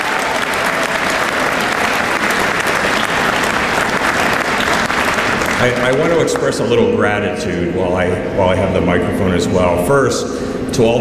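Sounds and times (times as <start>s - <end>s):
audience clapping: 0.0s - 6.8s
speech: 5.6s - 10.9s.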